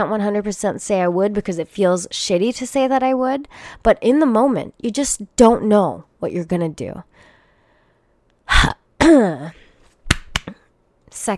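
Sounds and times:
speech: 0.0s - 7.3s, 11.2s - 11.3s
throat clearing: 8.5s - 9.6s.

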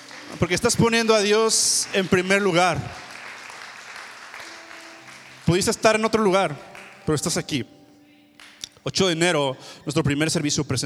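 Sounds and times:
audience applauding: 0.0s - 7.4s
speech: 0.3s - 3.1s, 5.5s - 7.8s, 8.8s - 10.8s.

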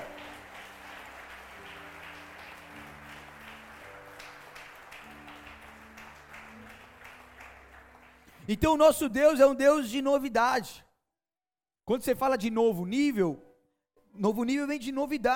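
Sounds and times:
audience applauding loudly: 0.0s - 8.6s
speech: 8.5s - 10.8s, 11.9s - 13.4s, 14.2s - 15.3s.

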